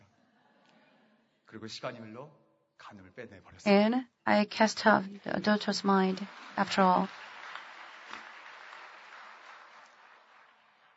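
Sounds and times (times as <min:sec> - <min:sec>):
speech: 0:01.5 - 0:07.3
audience applause: 0:04.8 - 0:10.9.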